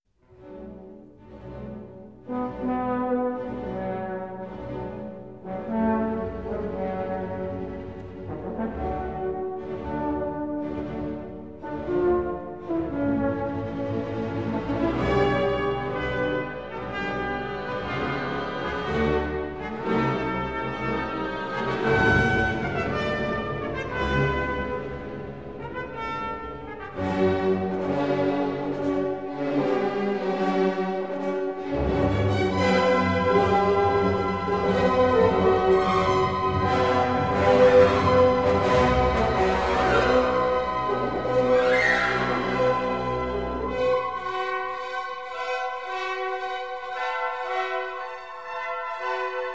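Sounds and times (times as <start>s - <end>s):
symphony: 0.2s - 49.5s.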